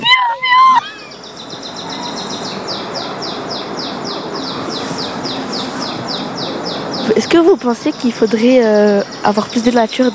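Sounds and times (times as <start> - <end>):
birds chirping outdoors: 0.0 - 10.1
constant outdoor hiss: 0.0 - 10.1
speech: 7.4 - 10.1.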